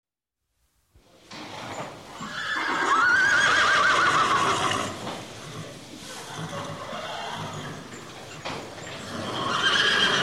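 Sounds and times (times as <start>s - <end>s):
horse neighing: 2.2s - 8.4s, 9.0s - 10.2s.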